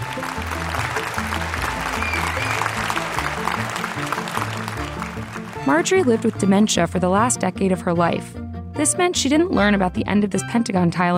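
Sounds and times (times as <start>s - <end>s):
audience standing ovation applause at a Mathematical Association of America lecture: 0.0s - 6.4s
speech: 5.7s - 11.1s.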